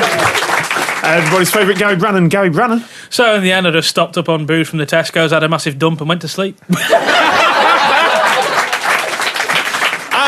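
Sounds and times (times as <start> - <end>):
live studio audience applauding: 0.0 - 2.2, 7.4 - 10.2
speech: 1.1 - 7.4
laughter: 6.7 - 9.7.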